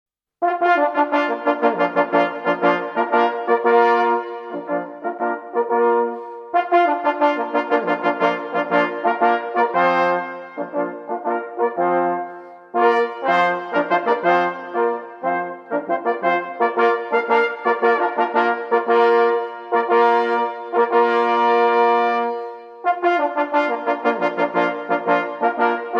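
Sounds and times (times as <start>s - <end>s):
historic quartet playing: 0.6s - 25.9s.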